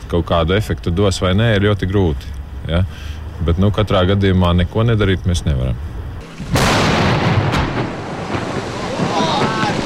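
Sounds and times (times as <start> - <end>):
speech: 0.1 - 6.7
churning water and debris roaring: 6.2 - 9.8
sharp crack: 6.2 - 9.8
explosive blasting of river ice plates: 6.3 - 9.8.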